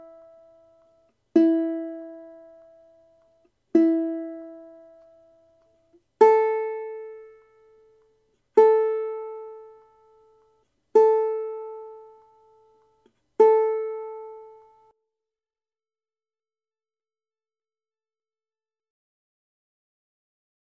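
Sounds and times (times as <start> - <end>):
ukulele tuning notes: 0.0 - 14.9.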